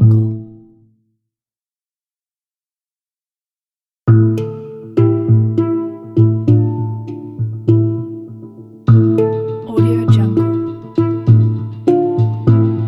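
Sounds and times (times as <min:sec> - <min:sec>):
mysterious tense hang drum ambience: 0:04.2 - 0:12.8.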